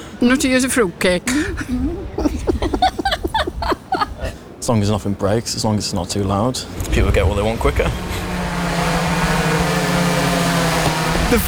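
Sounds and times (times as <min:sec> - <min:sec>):
laughter: 0:00.0 - 0:06.6
speech: 0:00.2 - 0:02.8, 0:04.7 - 0:08.2
delivery drone buzzing in flight: 0:07.8 - 0:11.4.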